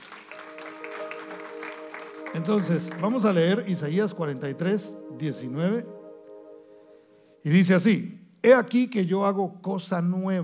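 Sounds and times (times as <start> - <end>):
audience applauding: 0.0 - 4.2
sustained low musical tone: 0.2 - 8.0
speech: 2.3 - 6.0, 7.4 - 10.4.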